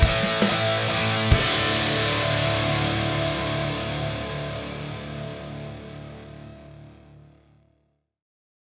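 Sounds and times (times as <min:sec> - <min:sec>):
performance backing track without guitar: 0:00.0 - 0:06.4.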